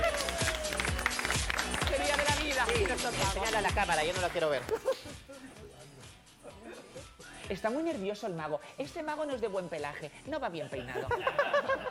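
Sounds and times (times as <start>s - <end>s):
audience applause for a magician: 0.0s - 4.7s
speech: 3.0s - 5.1s, 7.5s - 11.8s
laughter: 4.6s - 5.6s, 10.9s - 11.9s.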